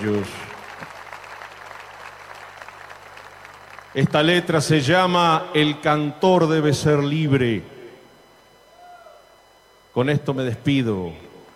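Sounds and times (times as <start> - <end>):
speech: 0.0 - 0.5, 3.9 - 7.7, 10.0 - 11.3
audience applause: 0.0 - 4.0.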